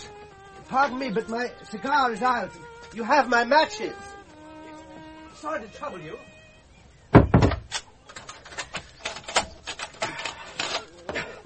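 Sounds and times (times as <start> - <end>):
speech: 0.7 - 4.1, 5.4 - 6.3
door being locked and barred: 7.2 - 10.9.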